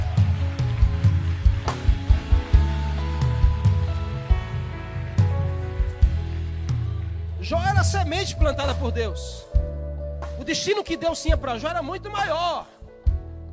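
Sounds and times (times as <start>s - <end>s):
audience applauding: 0.0s - 8.6s
sustained keyboard chords: 0.0s - 13.5s
speech: 7.5s - 9.5s, 10.4s - 12.8s.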